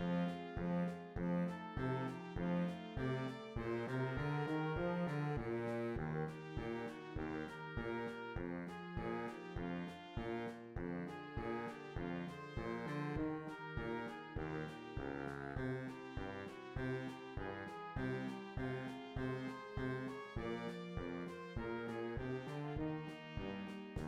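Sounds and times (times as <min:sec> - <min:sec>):
E-flat tuba: 0:00.0 - 0:24.0.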